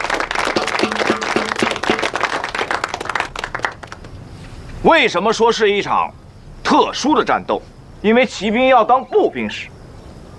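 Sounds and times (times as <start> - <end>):
audience applause: 0.0 - 4.1
speech: 4.8 - 9.7.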